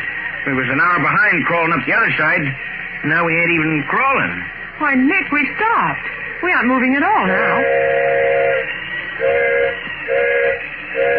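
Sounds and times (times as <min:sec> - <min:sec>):
steam train rumbling: 0:00.0 - 0:11.1
speech: 0:00.4 - 0:08.2
steam train whistle signaling for a flagman: 0:06.6 - 0:11.1.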